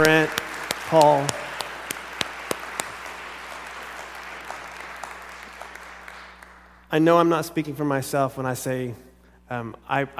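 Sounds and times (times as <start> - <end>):
audience clapping in support: 0.0 - 6.9
speech: 0.9 - 1.5, 6.9 - 10.1.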